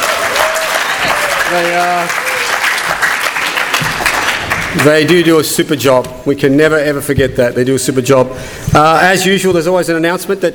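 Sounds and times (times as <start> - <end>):
round of applause: 0.0 - 5.3
speech: 1.5 - 2.2, 4.7 - 10.5.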